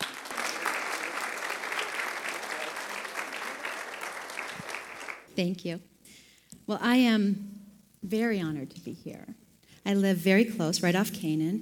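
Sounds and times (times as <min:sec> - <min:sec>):
audience applause: 0:00.0 - 0:05.3
speech: 0:05.4 - 0:05.9, 0:06.7 - 0:11.6.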